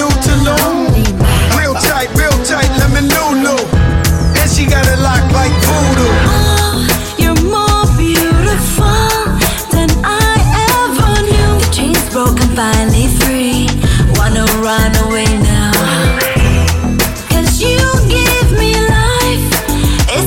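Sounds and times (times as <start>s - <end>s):
clean drums: 0.0s - 20.2s
hype record scratching: 0.1s - 6.6s.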